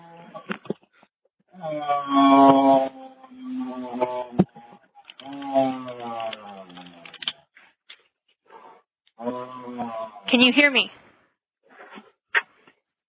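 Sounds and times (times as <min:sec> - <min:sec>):
speech: 0:01.6 - 0:02.9, 0:10.4 - 0:11.0
agonal breathing over a phone line: 0:07.5 - 0:08.9, 0:10.9 - 0:12.9.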